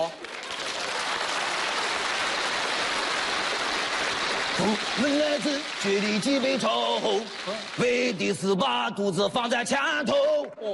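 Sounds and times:
applause: 0:00.0 - 0:08.5
speech: 0:04.6 - 0:10.7.

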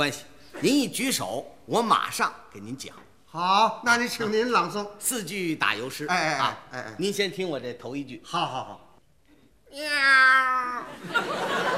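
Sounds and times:
speech: 0:00.0 - 0:08.8, 0:09.7 - 0:11.7
man imitating a cat with a long yowling meow: 0:09.7 - 0:11.0
audience laughter and noise: 0:10.9 - 0:11.7.

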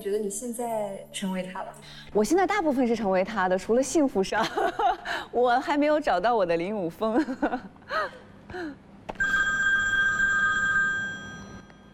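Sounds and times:
speech: 0:00.0 - 0:08.8
telephone ringing: 0:09.2 - 0:11.9.

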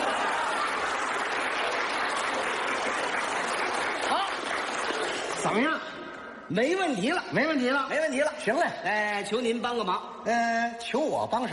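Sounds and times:
audience applause: 0:00.0 - 0:05.7
speech: 0:05.5 - 0:05.9, 0:06.5 - 0:11.5.

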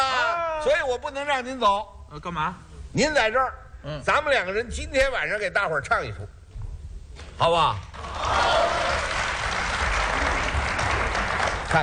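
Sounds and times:
speech: 0:00.6 - 0:06.4, 0:07.4 - 0:08.8
audience applause: 0:08.0 - 0:11.8.

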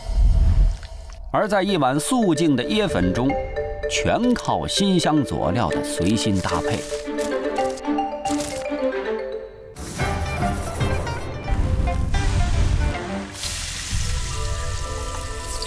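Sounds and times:
music: 0:01.0 - 0:15.6
speech: 0:01.3 - 0:07.2
hot oil poured over rice noodles sizzling: 0:12.2 - 0:15.6.

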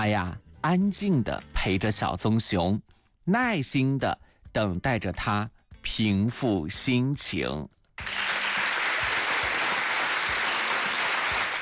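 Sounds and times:
speech: 0:00.0 - 0:08.2
applause: 0:08.0 - 0:11.5.

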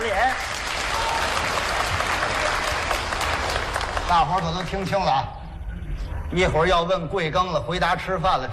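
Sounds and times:
audience applause: 0:00.0 - 0:05.0
speech: 0:04.1 - 0:05.4, 0:06.3 - 0:08.5.

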